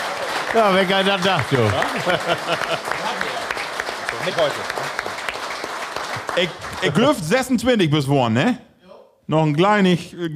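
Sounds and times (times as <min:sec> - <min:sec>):
audience applause: 0:00.0 - 0:07.5
speech: 0:00.5 - 0:05.2, 0:06.4 - 0:08.7, 0:09.3 - 0:10.3
laughter: 0:01.4 - 0:03.5, 0:06.4 - 0:07.5.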